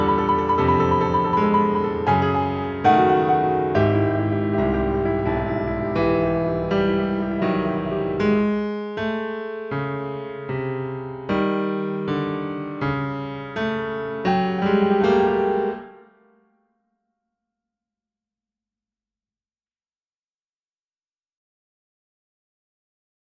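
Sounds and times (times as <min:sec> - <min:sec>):
prelude music: 0:00.0 - 0:16.5.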